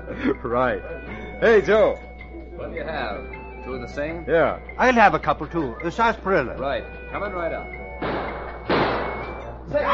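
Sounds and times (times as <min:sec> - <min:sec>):
speech: 0:00.1 - 0:08.1, 0:09.7 - 0:09.9
gunshot: 0:08.0 - 0:09.4.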